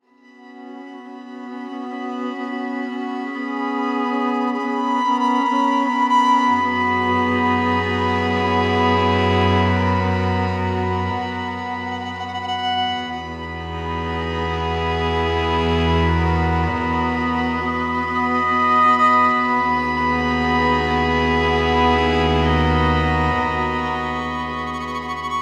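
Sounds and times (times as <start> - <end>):
violin: 0.0 - 25.4.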